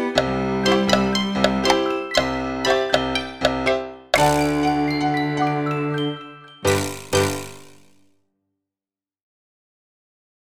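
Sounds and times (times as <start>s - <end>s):
slow accompaniment music: 0.0s - 8.0s.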